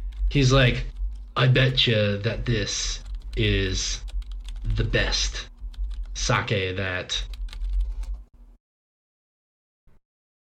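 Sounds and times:
computer keyboard typing: 0.0 - 6.2, 7.2 - 8.3
speech: 0.3 - 5.5, 6.2 - 7.3.

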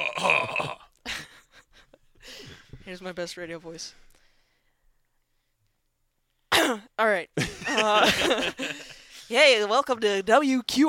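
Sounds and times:
speech: 2.9 - 4.1, 7.0 - 10.8
person coughing: 6.5 - 6.9.

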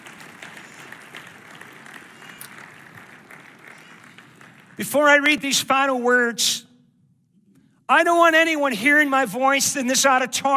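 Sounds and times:
audience clapping: 0.0 - 5.4
speech: 4.8 - 6.6, 7.9 - 10.5.

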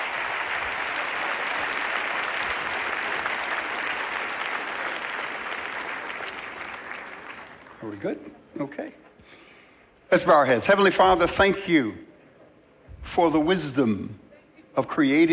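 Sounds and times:
audience applause: 0.0 - 7.8
speech: 7.8 - 9.4, 10.1 - 12.1, 13.0 - 14.2, 14.8 - 15.3.

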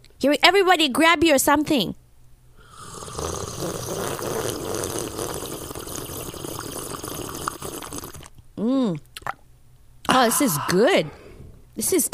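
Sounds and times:
speech: 0.2 - 2.0, 8.6 - 9.4, 10.2 - 11.2, 11.8 - 12.1
tea being poured: 2.8 - 8.3.

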